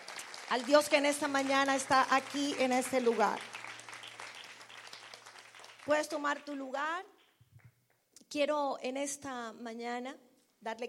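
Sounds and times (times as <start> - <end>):
audience applause: 0.0 - 6.5
speech: 0.5 - 3.5, 5.9 - 7.2, 8.3 - 10.8.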